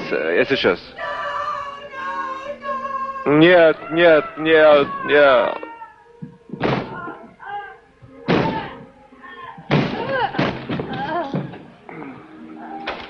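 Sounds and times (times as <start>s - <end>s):
speech: 0.1s - 1.1s, 3.2s - 5.6s
door forced open and its lock broken: 9.7s - 11.6s.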